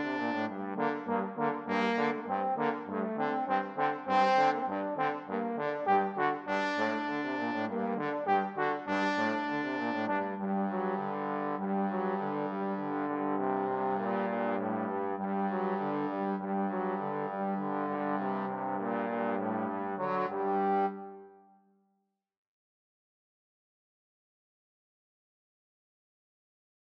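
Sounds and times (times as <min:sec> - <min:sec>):
trombone trio: 0:00.0 - 0:21.0.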